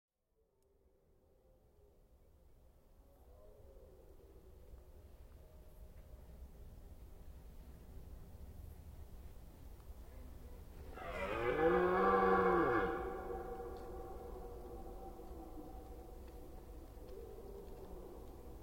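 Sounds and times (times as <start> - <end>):
red deer stag roaring during the rut in Forêt d'Orleans, France: 11.0 - 15.3.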